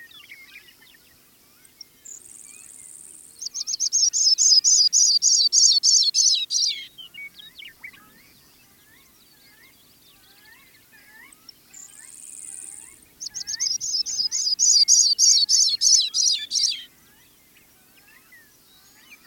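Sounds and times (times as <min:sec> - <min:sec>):
Sprague's pipit calling: 0:02.3 - 0:08.2, 0:10.4 - 0:19.2.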